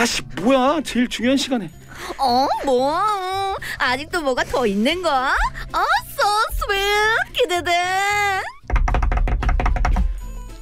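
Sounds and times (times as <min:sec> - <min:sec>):
speech: 0:00.0 - 0:08.5
loud knocking on a door: 0:08.6 - 0:10.2.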